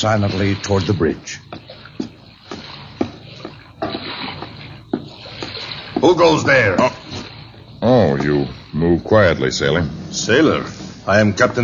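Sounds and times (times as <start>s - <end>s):
speech: 0.0s - 1.6s, 6.1s - 6.9s, 7.8s - 11.6s
native canoe gliding through water: 0.0s - 11.6s.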